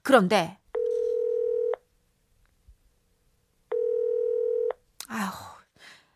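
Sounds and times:
speech: 0.1 - 0.6
telephone dialing tones: 0.8 - 1.8, 3.7 - 4.7.

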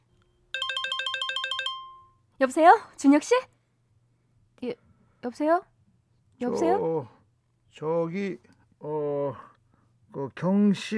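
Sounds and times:
telephone ringing: 0.5 - 2.2
speech: 2.4 - 3.5, 4.6 - 5.7, 6.4 - 9.5, 10.1 - 10.9.

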